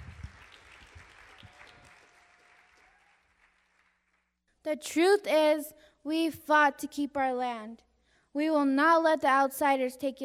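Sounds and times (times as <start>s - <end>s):
audience applause: 0.0s - 4.3s
speech: 4.7s - 10.2s.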